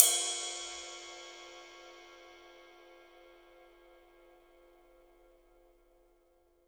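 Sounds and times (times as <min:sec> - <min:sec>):
ride cymbal: 0:00.0 - 0:03.0.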